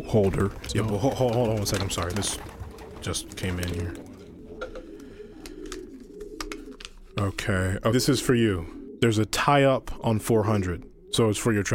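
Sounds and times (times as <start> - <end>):
wing flutters: 0.0 - 4.7
pigeon cooing: 0.0 - 11.7
speech: 0.1 - 4.1, 7.2 - 11.7.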